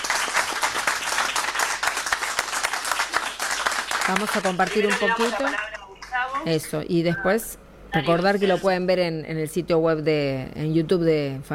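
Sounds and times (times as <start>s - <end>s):
applause: 0.0s - 6.5s
speech: 4.1s - 11.5s.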